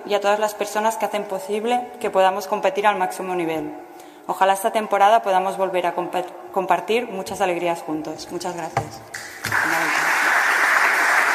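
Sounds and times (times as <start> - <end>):
speech: 0.1 - 10.0
audience applause: 9.2 - 11.3.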